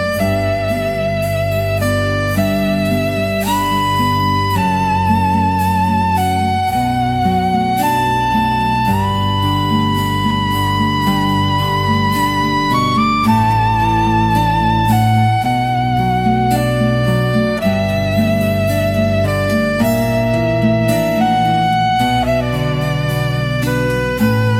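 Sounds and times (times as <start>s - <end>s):
instrumental Christmas hymn: 0.0s - 24.5s.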